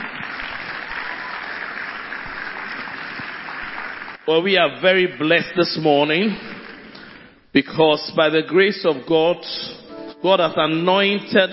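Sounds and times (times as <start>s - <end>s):
audience clapping: 0.0s - 7.4s
speech: 4.3s - 6.5s, 7.6s - 11.5s.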